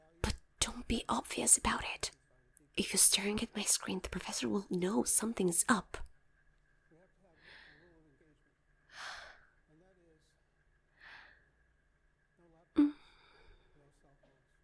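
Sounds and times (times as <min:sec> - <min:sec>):
speech: 0:00.8 - 0:02.2, 0:02.8 - 0:06.1
person yawning: 0:12.8 - 0:13.3.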